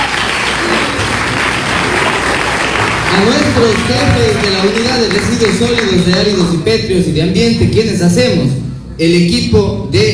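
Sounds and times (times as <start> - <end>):
audience applause: 0.0 - 6.5
speech: 3.2 - 10.1.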